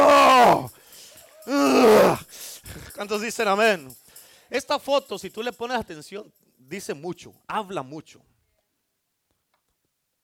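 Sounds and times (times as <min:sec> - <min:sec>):
man imitating a lion's roar: 0:00.0 - 0:00.7, 0:01.4 - 0:02.2
speech: 0:03.0 - 0:08.3.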